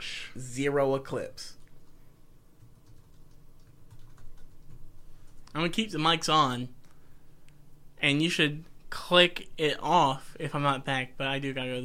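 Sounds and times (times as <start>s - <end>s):
speech: 0.4s - 1.6s, 5.6s - 6.8s, 8.0s - 11.8s
computer keyboard typing: 1.5s - 2.0s, 2.6s - 5.5s.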